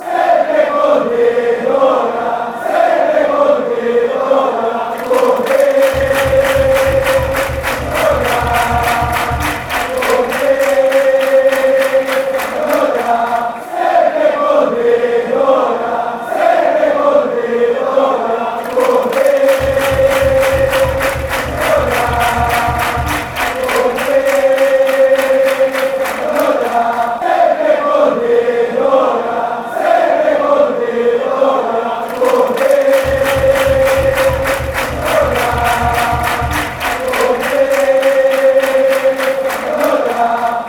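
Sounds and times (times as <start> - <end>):
fans chanting: 0.0 - 40.6.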